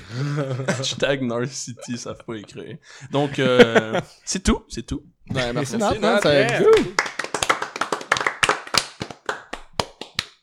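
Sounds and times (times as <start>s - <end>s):
laughter: 0.0s - 4.2s, 5.3s - 7.1s
speech: 0.1s - 7.1s
people clapping after a segment: 5.4s - 10.4s.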